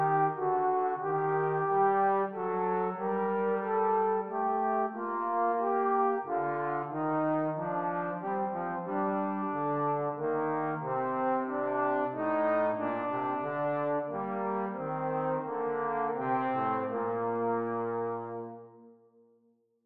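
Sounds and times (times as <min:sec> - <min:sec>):
trombone duet: 0:00.0 - 0:18.8.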